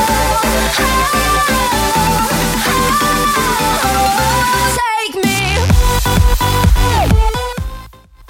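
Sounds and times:
music loop at 128 bpm: 0.0s - 8.2s.

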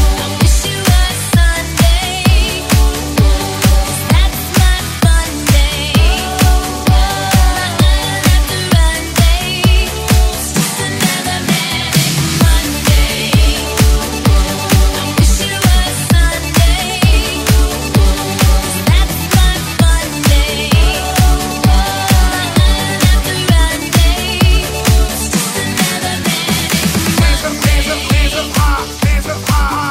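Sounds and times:
party hype music: 0.0s - 29.8s.

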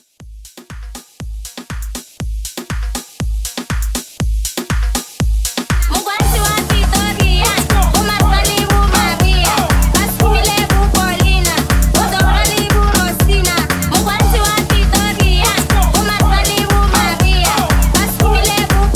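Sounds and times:
party break intro music: 0.0s - 18.9s.

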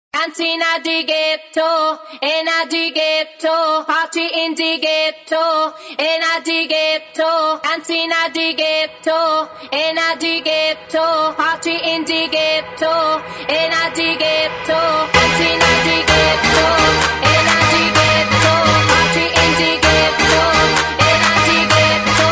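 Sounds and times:
a cappella vocals: 0.2s - 22.3s.

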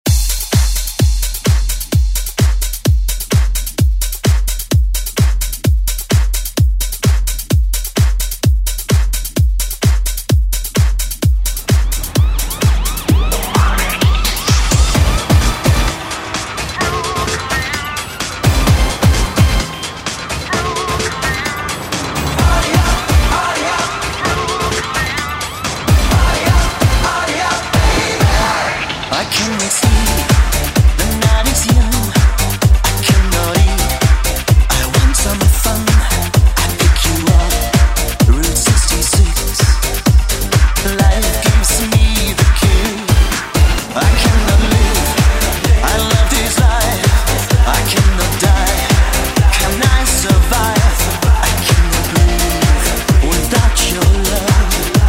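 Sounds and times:
drum: 0.0s - 55.0s.

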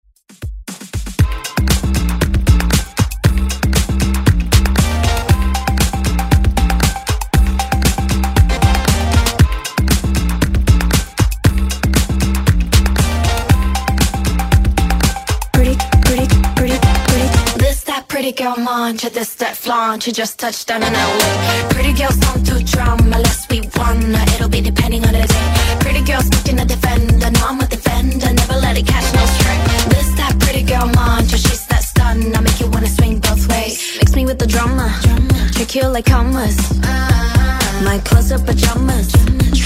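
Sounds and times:
K-pop music: 0.4s - 39.6s.

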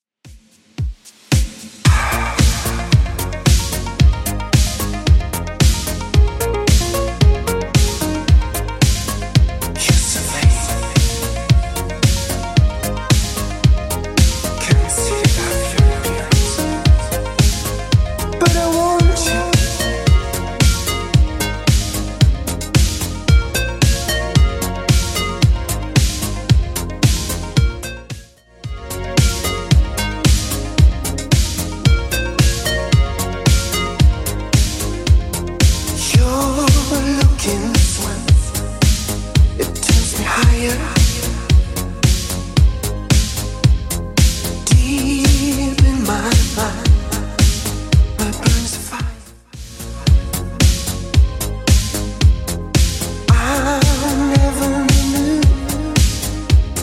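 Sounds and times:
1980s drum machine beat: 0.3s - 56.8s.

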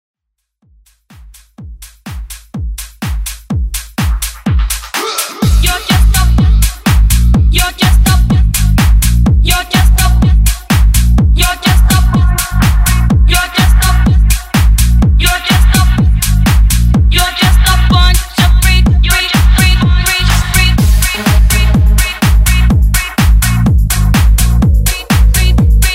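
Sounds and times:
vocal house music: 0.9s - 25.9s.

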